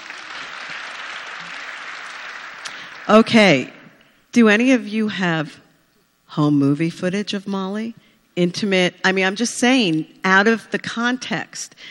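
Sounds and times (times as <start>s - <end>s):
audience clapping: 0.0s - 3.4s
speech: 3.1s - 3.8s, 4.4s - 5.6s, 6.3s - 11.8s.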